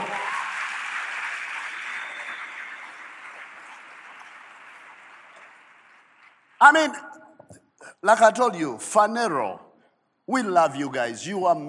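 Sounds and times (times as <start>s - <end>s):
audience clapping: 0.0s - 7.0s
speech: 6.6s - 7.2s, 8.0s - 9.6s, 10.3s - 11.6s.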